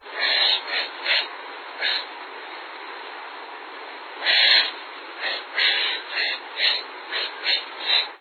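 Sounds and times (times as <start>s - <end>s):
black vulture: 0.0s - 2.1s, 4.2s - 8.1s.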